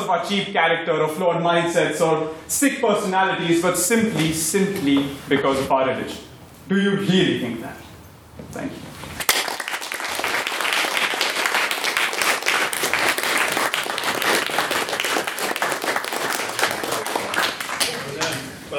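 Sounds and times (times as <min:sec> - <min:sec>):
speech: 0:00.1 - 0:07.8, 0:08.4 - 0:09.2
audience applause: 0:09.2 - 0:18.4.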